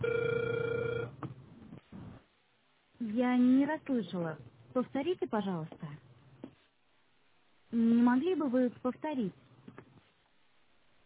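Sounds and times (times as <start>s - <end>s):
telephone ringing tone during dialing: 0.0s - 1.2s
speech: 3.4s - 5.9s, 7.7s - 9.4s.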